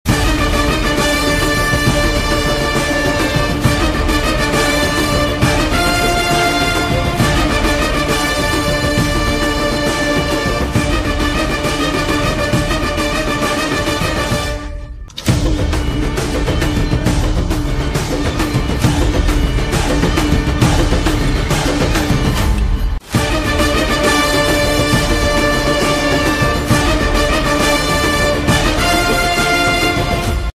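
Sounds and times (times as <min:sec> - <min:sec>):
background music ringtone: 0:00.0 - 0:30.5.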